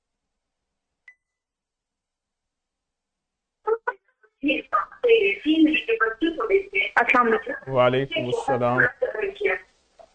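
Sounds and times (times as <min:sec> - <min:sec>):
television programme voices in the background of a phone line: 0:03.7 - 0:09.7
speech: 0:04.4 - 0:09.6.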